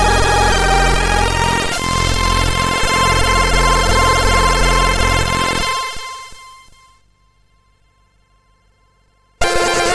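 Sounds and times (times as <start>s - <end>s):
high trance music on a MOS6581R3 sound chip: 0.0s - 5.6s.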